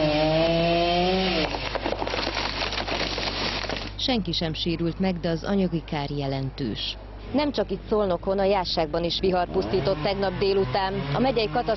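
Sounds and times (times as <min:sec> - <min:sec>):
chainsaw cutting trees: 0:00.0 - 0:03.9, 0:09.6 - 0:11.7
speech: 0:04.0 - 0:11.7.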